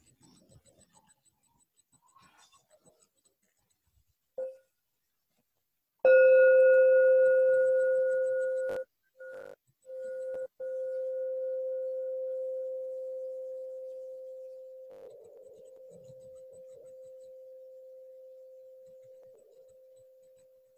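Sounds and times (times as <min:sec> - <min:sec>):
meditation bell struck and ringing: 0:06.1 - 0:08.8, 0:10.0 - 0:20.6.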